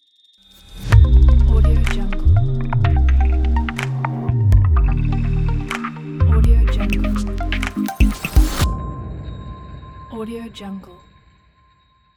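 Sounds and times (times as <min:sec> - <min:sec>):
abstract audio logo: 0:00.6 - 0:10.1.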